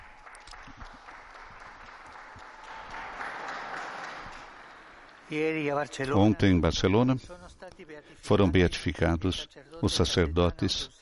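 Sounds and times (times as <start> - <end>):
crowd applause: 0.0 - 5.4
speech: 5.3 - 7.4, 8.2 - 11.0.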